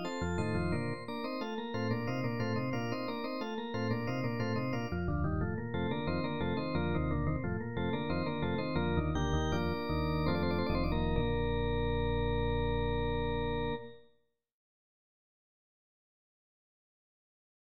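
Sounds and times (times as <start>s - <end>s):
arranged organ fugue: 0.0s - 14.0s.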